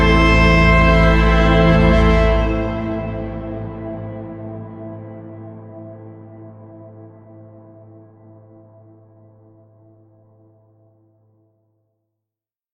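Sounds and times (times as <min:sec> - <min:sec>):
viola textures: 0:00.0 - 0:05.9.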